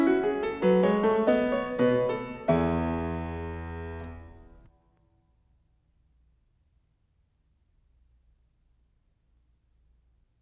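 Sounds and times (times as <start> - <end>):
fugue in E major: 0.0 - 4.6.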